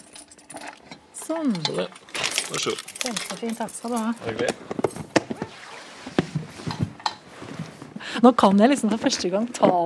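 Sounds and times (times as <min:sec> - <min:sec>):
speech: 0:01.3 - 0:04.8, 0:08.2 - 0:09.8
keys jingling: 0:02.0 - 0:04.2.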